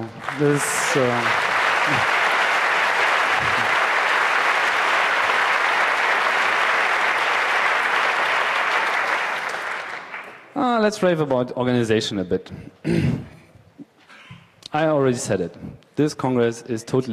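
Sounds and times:
large audience applause: 0:00.0 - 0:10.5
speech: 0:00.4 - 0:02.2, 0:10.8 - 0:13.3, 0:14.8 - 0:17.1.

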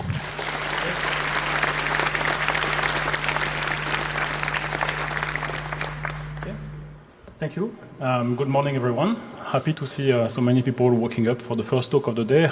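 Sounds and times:
audience applause: 0:00.0 - 0:07.0
speech: 0:07.4 - 0:12.5.

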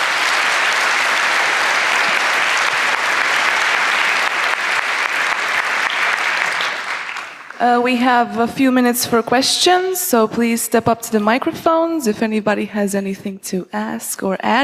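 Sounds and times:
applause: 0:00.0 - 0:07.7
speech: 0:07.6 - 0:14.6.

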